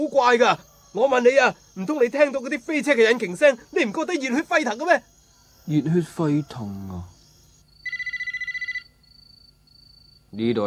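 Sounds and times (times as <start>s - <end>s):
speech: 0.0s - 7.1s, 10.3s - 10.6s
telephone ringing at a tofu shop: 7.8s - 9.0s.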